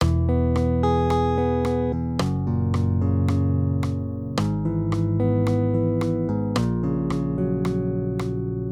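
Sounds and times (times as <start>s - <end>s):
major triads: 0.0s - 8.7s.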